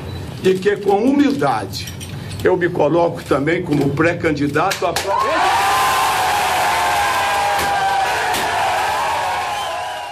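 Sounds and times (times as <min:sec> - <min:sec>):
speech: 0:00.4 - 0:05.6
crowd shouting and cheering: 0:05.0 - 0:10.1.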